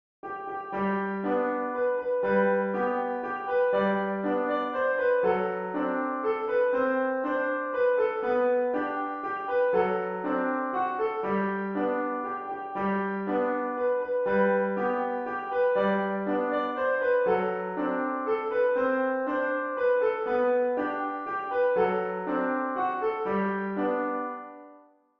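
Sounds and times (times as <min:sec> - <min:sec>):
piano: 0:00.2 - 0:25.1.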